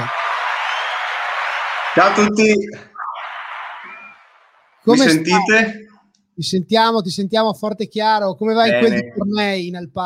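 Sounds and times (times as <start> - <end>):
audience applause: 0.0 - 4.9
speech: 2.0 - 2.9, 4.8 - 10.0.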